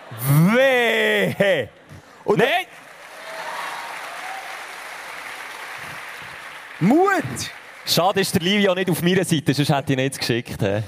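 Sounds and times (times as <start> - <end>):
speech: 0.1 - 2.8, 6.8 - 10.8
audience clapping: 2.4 - 9.4.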